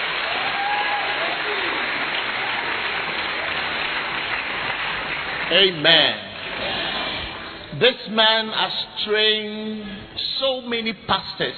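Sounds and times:
audience clapping hands: 0:00.0 - 0:07.4
speech: 0:05.5 - 0:06.8, 0:07.8 - 0:11.5.

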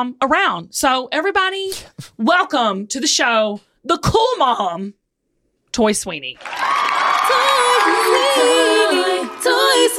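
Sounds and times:
speech: 0:00.0 - 0:05.0, 0:05.8 - 0:06.7, 0:08.0 - 0:09.9
short sung theme song for a podcast guest: 0:07.1 - 0:09.9.

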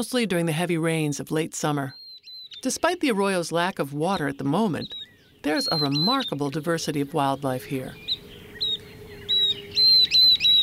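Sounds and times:
speech: 0:00.0 - 0:02.0, 0:02.6 - 0:08.1
northern beardless tyrannulet singing: 0:01.9 - 0:02.8, 0:04.2 - 0:10.6.

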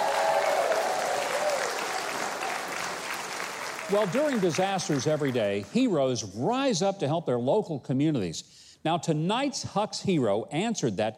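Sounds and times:
audience applause: 0:00.0 - 0:05.7
speech: 0:03.9 - 0:11.1.

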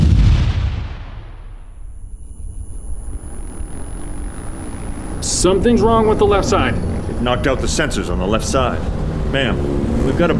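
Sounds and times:
sticky bomb explosion: 0:00.0 - 0:02.1
low rumble: 0:00.0 - 0:05.3
speech: 0:05.2 - 0:10.3.

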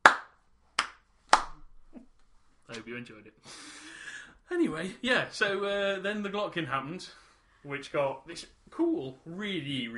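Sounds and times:
sharp hand claps: 0:00.0 - 0:01.6
speech: 0:02.7 - 0:03.9, 0:04.5 - 0:09.9.

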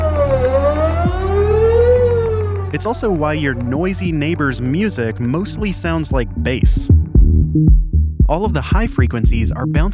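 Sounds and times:
sweeping tornado siren: 0:00.0 - 0:03.9
speech: 0:02.7 - 0:07.0, 0:07.6 - 0:09.9.

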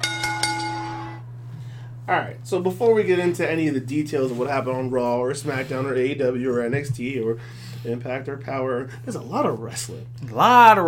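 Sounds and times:
bell ringing: 0:00.0 - 0:01.2
speech: 0:02.1 - 0:10.8.

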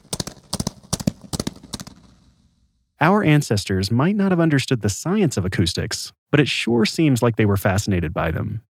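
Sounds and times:
echoing hoofbeats of galloping horses: 0:00.0 - 0:02.6
speech: 0:03.0 - 0:08.7.

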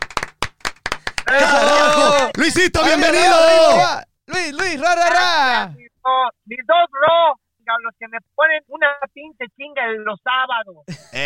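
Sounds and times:
applause: 0:00.0 - 0:02.7
people shouting and cheering: 0:01.2 - 0:04.0
speech: 0:01.3 - 0:01.8, 0:02.4 - 0:11.2.

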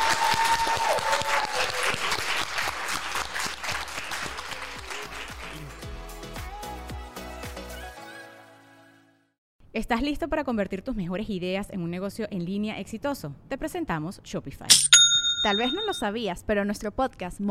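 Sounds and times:
applause: 0:00.0 - 0:06.6
speech: 0:09.8 - 0:17.4.

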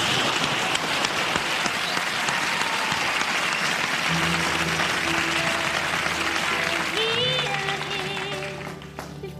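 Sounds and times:
television studio audience applause welcoming a singer: 0:00.0 - 0:09.2.

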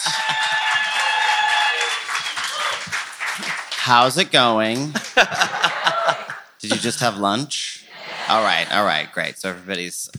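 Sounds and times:
audience applause: 0:00.0 - 0:07.2, 0:07.9 - 0:09.0
laughter: 0:00.0 - 0:09.2
speech: 0:03.9 - 0:05.5, 0:06.6 - 0:07.6, 0:08.3 - 0:10.1.

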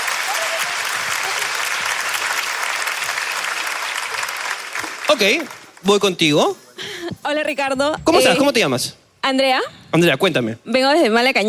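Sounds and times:
audience applause: 0:00.0 - 0:05.8
speech: 0:05.1 - 0:06.6, 0:07.2 - 0:11.4.

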